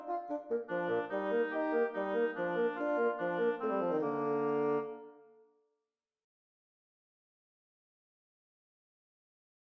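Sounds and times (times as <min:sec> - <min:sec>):
bassoon in a B-flat major duet: 0:00.0 - 0:05.3
oboe in a B-flat major duet: 0:00.0 - 0:05.3.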